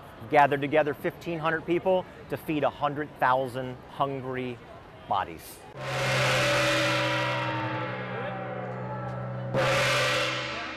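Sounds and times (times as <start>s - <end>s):
speech: 0.3s - 7.0s
gong struck: 5.8s - 10.7s.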